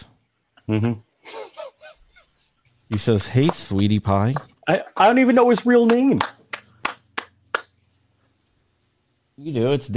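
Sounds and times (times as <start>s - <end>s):
speech: 0.7s - 1.1s, 2.9s - 6.4s, 9.4s - 9.9s
people applauding: 5.6s - 7.7s.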